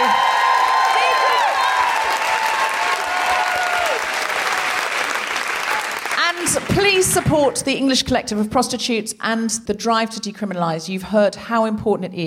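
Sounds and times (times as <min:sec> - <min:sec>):
audience applause: 0:00.0 - 0:07.4
speech: 0:07.0 - 0:12.2.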